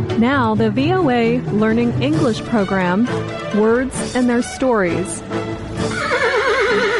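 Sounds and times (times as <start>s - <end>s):
speech: 0.2s - 5.5s
horse neighing: 5.8s - 6.9s.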